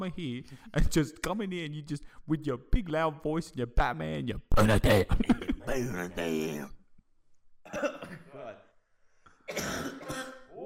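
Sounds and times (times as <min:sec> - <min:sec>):
speech: 0:00.0 - 0:06.8, 0:07.6 - 0:08.7
chesty rough cough from a throat strained by shouting: 0:07.7 - 0:08.6, 0:09.5 - 0:10.6.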